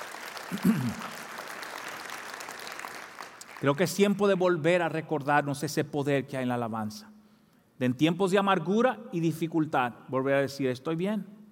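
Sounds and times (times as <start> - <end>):
audience applause: 0.0 - 3.6
speech: 0.5 - 1.1, 3.6 - 7.1, 7.8 - 11.4.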